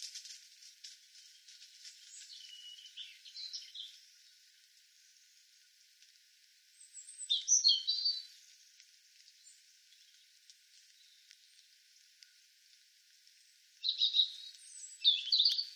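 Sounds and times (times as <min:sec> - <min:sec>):
European robin Erithacus rubecula singing high tinkling phrases: 0:02.1 - 0:04.2, 0:06.8 - 0:08.6, 0:13.4 - 0:15.7.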